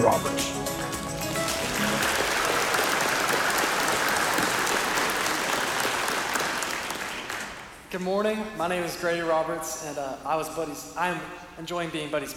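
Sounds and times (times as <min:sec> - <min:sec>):
church congregation applauding to welcome a summer preaching intern: 0:00.0 - 0:07.8
speech: 0:08.0 - 0:12.3.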